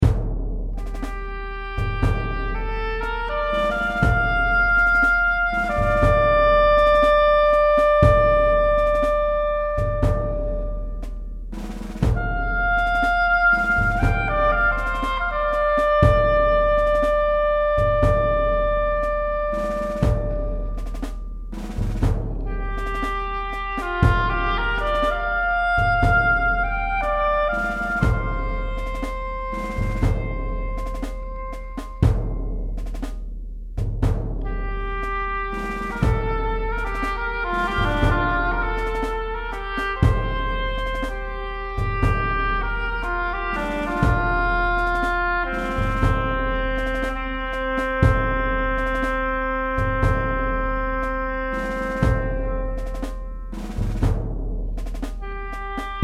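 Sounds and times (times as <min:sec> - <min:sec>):
drums: 0:00.0 - 0:56.0
oboe solo: 0:00.8 - 0:11.2, 0:12.1 - 0:21.2, 0:22.4 - 0:32.4, 0:34.4 - 0:53.7, 0:55.2 - 0:56.0.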